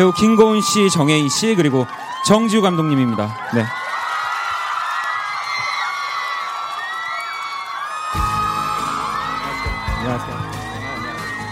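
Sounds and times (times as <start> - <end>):
speech: 0.0 - 3.8
audience applause: 0.0 - 11.5.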